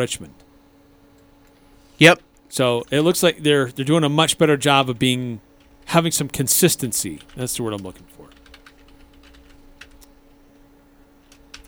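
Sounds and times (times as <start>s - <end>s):
speech: 0.0s - 0.5s, 2.0s - 8.4s
typing on a computer keyboard: 7.2s - 10.4s, 11.2s - 11.6s.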